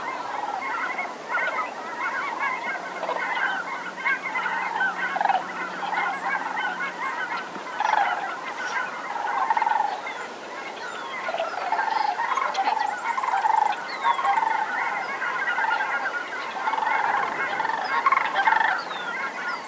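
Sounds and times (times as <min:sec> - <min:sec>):
sandhill cranes calling together in a dense chorus: 0:00.0 - 0:19.6.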